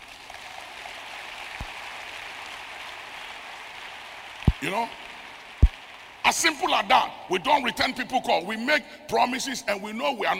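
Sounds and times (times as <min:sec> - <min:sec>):
audience clapping hands: 0:00.0 - 0:07.1
speech: 0:04.6 - 0:05.1, 0:06.3 - 0:10.3.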